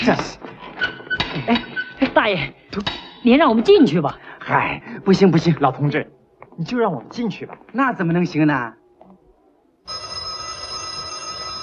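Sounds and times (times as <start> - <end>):
speech: 0.0 - 0.4, 1.4 - 8.8, 9.9 - 10.1
telephone bell ringing: 9.9 - 11.6.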